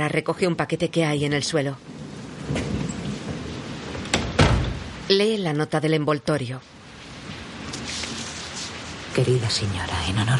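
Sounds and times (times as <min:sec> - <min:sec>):
speech: 0:00.0 - 0:02.6, 0:05.1 - 0:06.8, 0:09.2 - 0:10.3
low rumbling hiss: 0:00.0 - 0:10.3
concierge's lodge door clacks: 0:04.0 - 0:04.8
concierge's lodge door bumping: 0:04.0 - 0:04.9.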